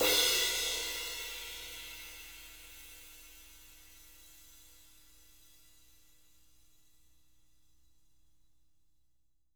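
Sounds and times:
jazz sizzle crash cymbal: 0:00.0 - 0:03.6.

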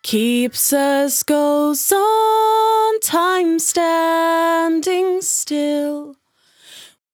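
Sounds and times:
velvet vocal in B minor: 0:00.0 - 0:07.0.

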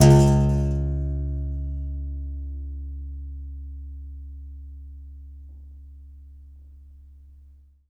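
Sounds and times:
contrabass balalaika plucked strings: 0:00.0 - 0:05.4.

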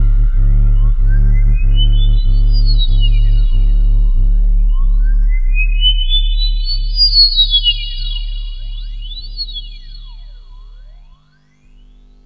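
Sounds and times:
Larsen feedback echo: 0:00.0 - 0:11.3.

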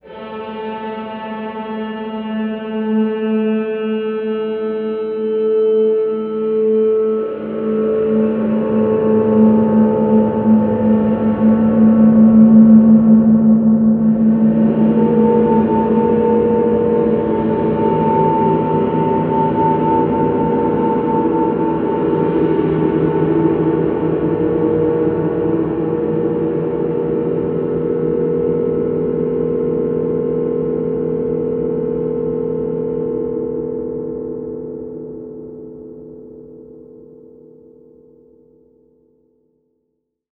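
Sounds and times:
guitar feedback storm: 0:00.0 - 0:36.6.

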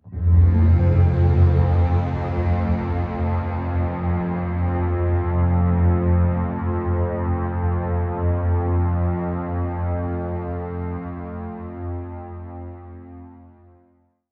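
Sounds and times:
brass: 0:00.0 - 0:14.0.

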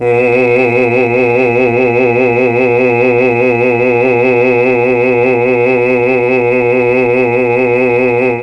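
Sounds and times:
Mellotron male choir voices: 0:00.0 - 0:08.4.

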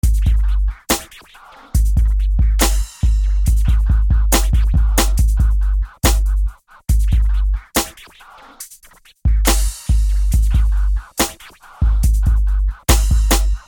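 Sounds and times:
music beat: 0:00.0 - 0:13.6.

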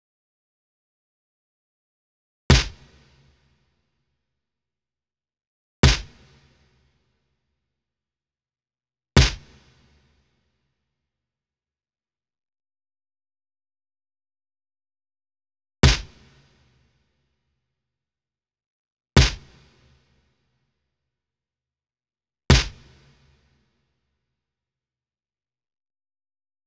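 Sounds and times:
snare drum: 0:02.5 - 0:03.2, 0:05.8 - 0:06.4, 0:09.2 - 0:09.7, 0:15.8 - 0:16.3, 0:19.2 - 0:19.6, 0:22.5 - 0:23.0.

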